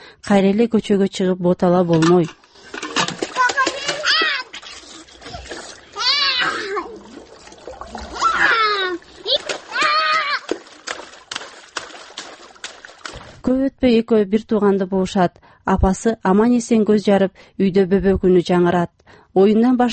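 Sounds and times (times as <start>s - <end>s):
speech: 0.2s - 2.4s, 13.7s - 19.9s
water splashing as a mother washes two children in a tub: 2.0s - 13.5s.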